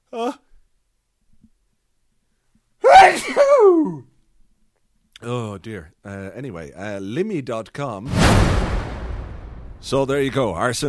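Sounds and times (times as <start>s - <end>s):
speech: 0.1s - 0.4s, 5.6s - 8.7s, 9.8s - 10.8s
person sneezing: 2.9s - 4.0s.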